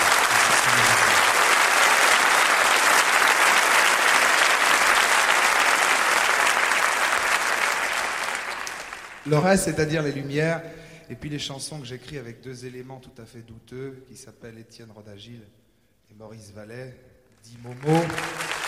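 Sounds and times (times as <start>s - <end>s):
audience applause: 0.0s - 9.4s, 17.6s - 18.6s
speech: 9.3s - 18.5s.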